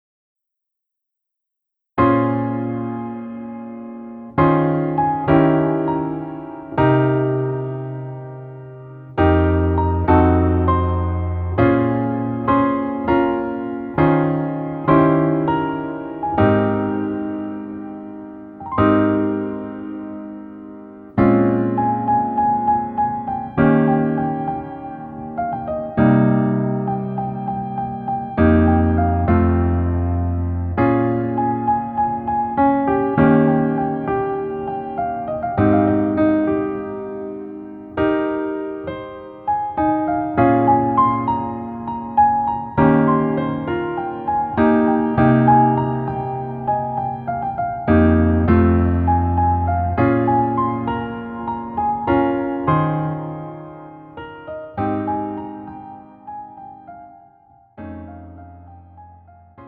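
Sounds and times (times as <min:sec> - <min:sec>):
piano melody backing track: 0:02.0 - 0:59.6.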